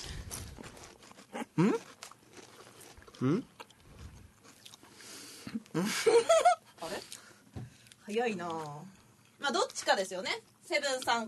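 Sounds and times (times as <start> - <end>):
crunching bites of a Calbee snack: 0.0 - 4.9
low noise: 0.0 - 11.2
speech: 1.6 - 1.9, 3.2 - 3.5, 5.8 - 7.2, 8.1 - 11.2.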